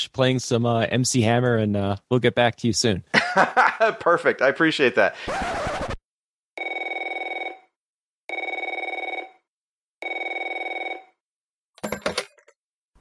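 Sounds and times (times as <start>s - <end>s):
speech: 0.0s - 5.9s
laughter: 3.1s - 4.2s
telephone ringing: 6.6s - 11.2s.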